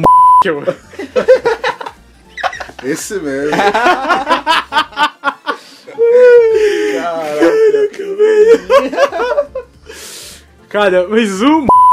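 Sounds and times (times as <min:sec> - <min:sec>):
censor beep over a spoken name: 0:00.0 - 0:00.5, 0:11.7 - 0:11.9
speech: 0:00.0 - 0:01.5, 0:02.8 - 0:04.8, 0:07.1 - 0:09.4, 0:10.7 - 0:11.8
laughter: 0:00.6 - 0:09.7.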